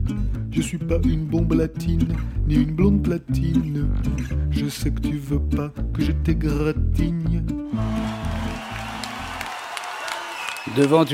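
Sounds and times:
speech: 0.1s - 8.0s, 10.6s - 11.1s
town audience clapping in a comic sketch: 7.8s - 11.1s.

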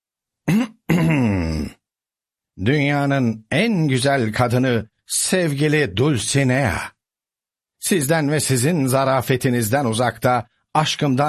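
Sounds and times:
voice imitating throat clearing in a narrated reading: 0.4s - 1.8s
speech: 2.6s - 7.0s, 7.8s - 11.2s.

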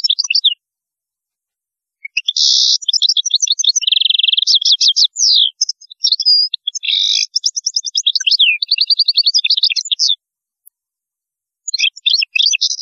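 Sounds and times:
European goldfinch singing: 0.0s - 0.6s, 2.0s - 10.2s, 11.7s - 12.8s.

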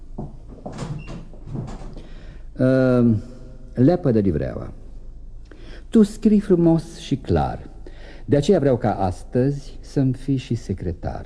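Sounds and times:
door being closed: 0.2s - 2.1s
speech: 2.6s - 4.8s, 5.9s - 7.7s, 8.3s - 11.2s.

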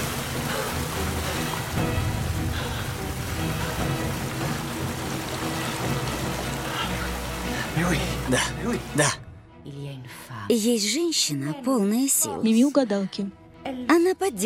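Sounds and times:
water gushing and filling a well: 0.0s - 9.0s
speech: 7.9s - 14.4s.

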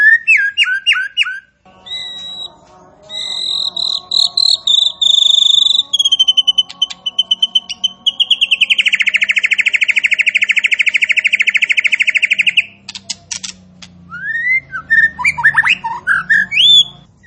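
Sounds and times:
striated grassbird song of sharp whistled notes and quick chirps: 0.0s - 13.0s, 14.1s - 17.2s.

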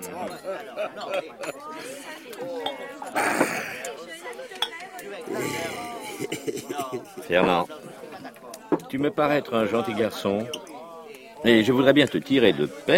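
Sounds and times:
speech: 0.0s - 3.6s, 7.3s - 7.9s, 8.9s - 10.7s, 11.4s - 12.9s
laughter: 0.0s - 4.3s, 5.1s - 8.4s
murmured voices and chatter: 0.0s - 12.9s
bottle and glasses clinking at a drinking table: 2.6s - 2.9s.

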